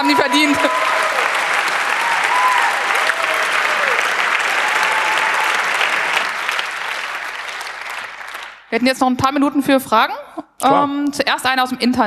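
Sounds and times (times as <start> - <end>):
speech: 0.0 - 1.0, 8.8 - 12.0
audience applause: 0.0 - 8.7.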